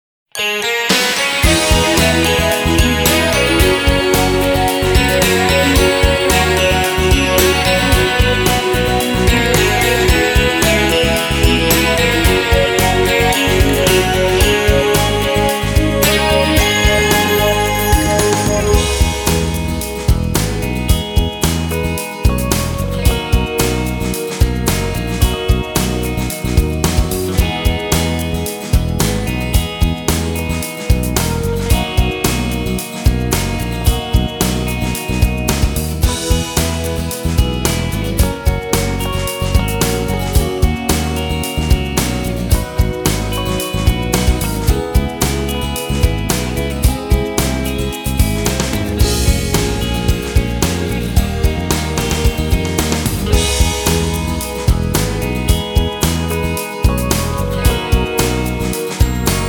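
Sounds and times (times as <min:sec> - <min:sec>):
off vocal instrumental music: 0:00.4 - 0:59.4.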